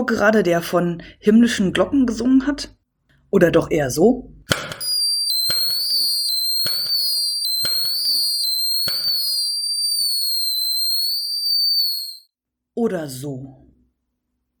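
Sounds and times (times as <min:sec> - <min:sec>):
speech: 0:00.0 - 0:04.7, 0:12.8 - 0:13.6
New Year's Eve firework bangs: 0:04.5 - 0:12.2
New Year's Eve whistling rockets: 0:04.5 - 0:12.3.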